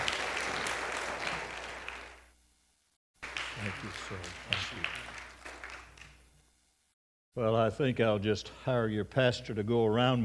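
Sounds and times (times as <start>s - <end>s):
church audience applause welcoming a guest speaker: 0.0s - 2.3s, 3.2s - 6.2s
speech: 3.6s - 5.3s, 7.4s - 10.2s.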